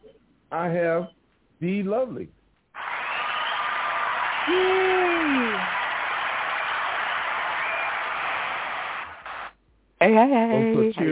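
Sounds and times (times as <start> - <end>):
speech: 0.5 - 2.4, 4.5 - 5.8, 10.0 - 11.1
audience cheering: 2.8 - 9.5.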